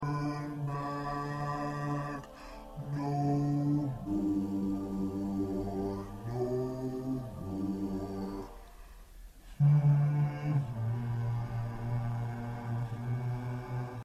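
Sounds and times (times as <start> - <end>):
bass: 0.0 - 14.0.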